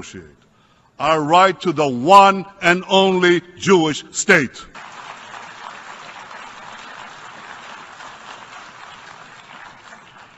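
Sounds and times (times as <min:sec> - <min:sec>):
speech: 0:00.0 - 0:04.9
large crowd applauding in an assembly hall: 0:04.7 - 0:10.3.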